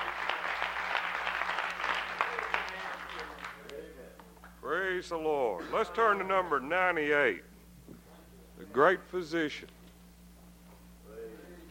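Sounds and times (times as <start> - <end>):
church congregation clapping to welcome a guest speaker: 0.0 - 4.6
speech: 5.0 - 7.5, 8.8 - 9.8.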